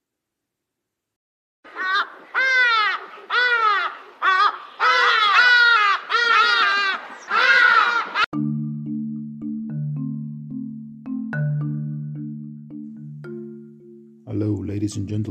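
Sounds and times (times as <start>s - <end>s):
hadeda ibis honking calls: 1.7s - 8.3s
low-pitched melody: 8.3s - 15.2s
speech: 14.9s - 15.2s.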